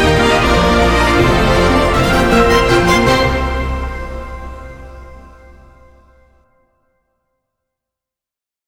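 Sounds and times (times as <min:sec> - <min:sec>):
startup music: 0:01.0 - 0:06.4.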